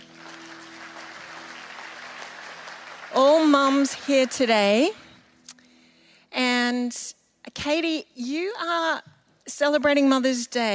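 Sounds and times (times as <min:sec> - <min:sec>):
audience applause: 0:00.0 - 0:04.9
speech: 0:03.2 - 0:05.0, 0:06.9 - 0:10.7.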